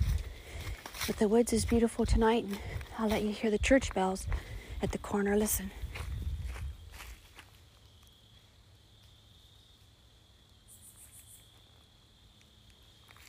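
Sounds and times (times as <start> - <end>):
insects: 0.0 - 13.2
speech: 1.1 - 5.8.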